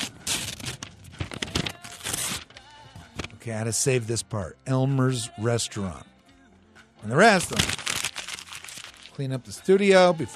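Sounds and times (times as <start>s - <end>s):
something being ripped off: 0.0s - 2.5s, 7.4s - 9.2s
speech: 3.4s - 6.1s, 7.0s - 7.9s, 9.2s - 10.3s.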